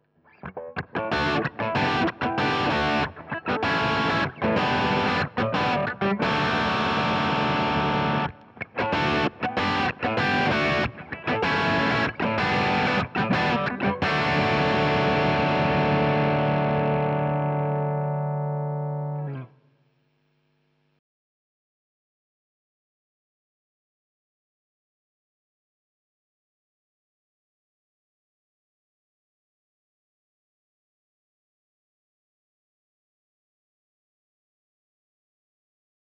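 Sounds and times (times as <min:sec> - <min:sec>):
electric guitar through a JHS Prestige boost and Marshall amplifier: 0:00.3 - 0:19.5.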